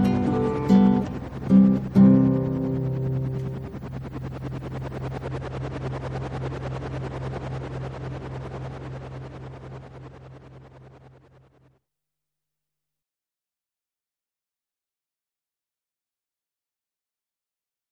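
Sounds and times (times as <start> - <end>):
helicopter: 0.0 - 11.8.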